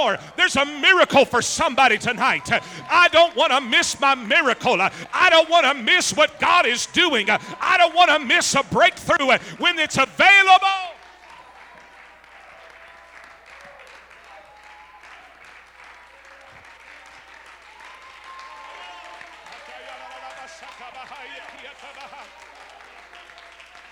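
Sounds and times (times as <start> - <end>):
laughter: 0.0 - 10.6, 19.6 - 23.4
raised voices calling and singing: 0.0 - 11.0
speech: 0.0 - 11.0
audience clapping hands: 0.0 - 23.9.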